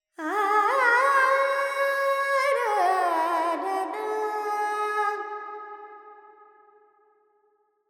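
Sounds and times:
woman singing Carnatic alap in raga Charukesi with reverb: 0:00.2 - 0:05.2.

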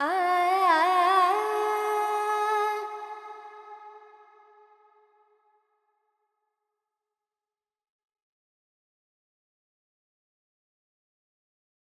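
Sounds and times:
Carnatic female vocal alaps in Dorian mode: 0:00.0 - 0:04.6.

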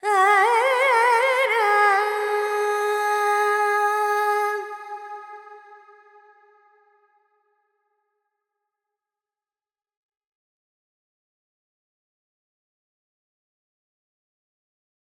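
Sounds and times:
Carnatic female vocal alap in Lydian mode with effects: 0:00.0 - 0:06.4.

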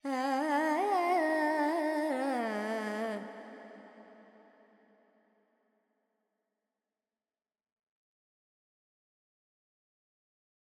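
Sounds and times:
Carnatic female alap in Purvi Kalyani: 0:00.0 - 0:04.0.

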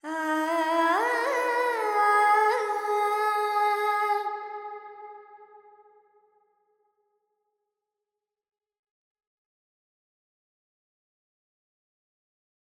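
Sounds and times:
Carnatic female vocal alap in Phrygian mode: 0:00.0 - 0:04.8.

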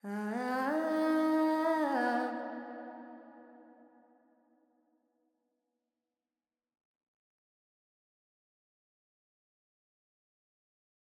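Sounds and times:
Carnatic female vocal alap in Phrygian mode: 0:00.0 - 0:02.9.

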